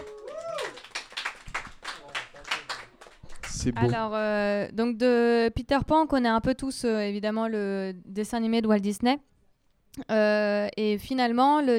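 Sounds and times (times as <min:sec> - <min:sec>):
audience applause: 0:00.0 - 0:03.8
speech: 0:03.6 - 0:09.3, 0:10.0 - 0:11.7.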